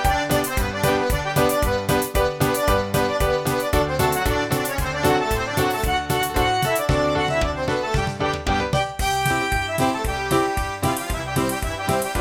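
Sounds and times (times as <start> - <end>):
traditional Irish polka in G from MIDI files: 0.0 - 12.1.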